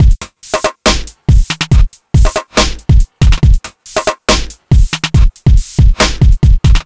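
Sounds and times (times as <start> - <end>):
music at 140 bpm: 0.0 - 6.8.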